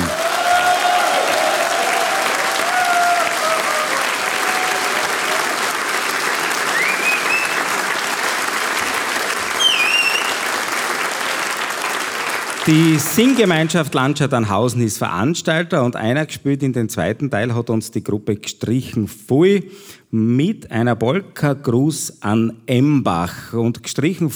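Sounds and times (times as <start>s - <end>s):
audience applause in Tannhausen: 0.0s - 14.2s
speech: 12.7s - 24.3s.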